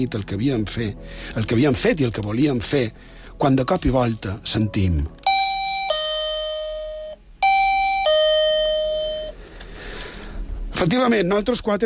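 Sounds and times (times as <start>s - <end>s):
speech: 0.0s - 5.2s, 10.8s - 11.8s
sensor device alarm two-tone chime: 5.3s - 9.4s.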